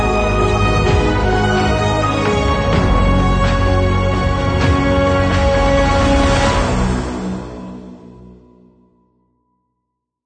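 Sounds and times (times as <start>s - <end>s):
inspiring and uplifting cinematic trailer music: 0.0s - 8.9s.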